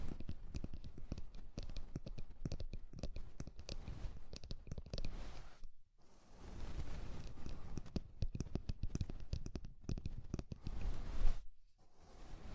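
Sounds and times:
ear cleaning with rhinestone and clay removal clicks and scrapes: 0.0 - 11.4.

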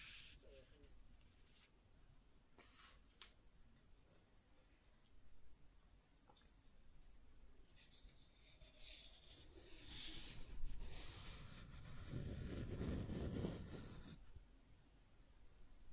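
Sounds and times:
scratching and tracing: 7.7 - 14.3.

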